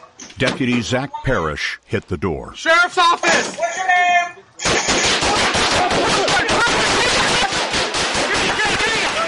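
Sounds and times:
speech: 0:00.4 - 0:05.2
gunfire during a police shootout: 0:04.6 - 0:09.2.

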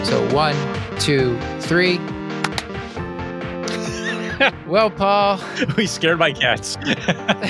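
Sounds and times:
speech: 0:00.1 - 0:02.1, 0:04.4 - 0:07.4
hand claps to sync audio recording: 0:02.4 - 0:02.7
laughter: 0:03.7 - 0:04.6, 0:05.3 - 0:06.1, 0:06.7 - 0:07.4.

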